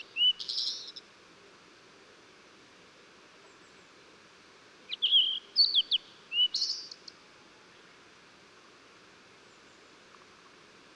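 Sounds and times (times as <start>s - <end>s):
Blue-and-white flycatcher song of clear slurred whistles and sharp high notes: 0.0s - 0.9s, 4.9s - 7.0s.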